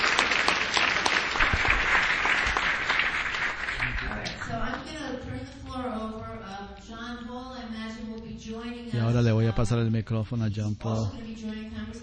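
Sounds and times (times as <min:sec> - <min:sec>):
audience applause: 0:00.0 - 0:04.6
speech: 0:08.9 - 0:12.0.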